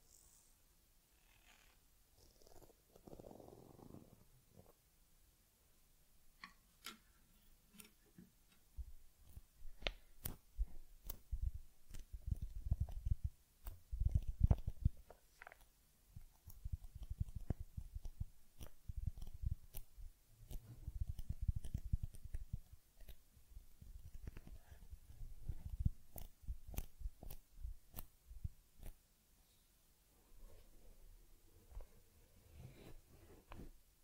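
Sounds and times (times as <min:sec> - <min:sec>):
soft brushing and rubbing of teddy fur during head massage and combing: 0:07.1 - 0:34.0
sharp little ticks and clicks: 0:09.2 - 0:24.8, 0:25.4 - 0:29.0.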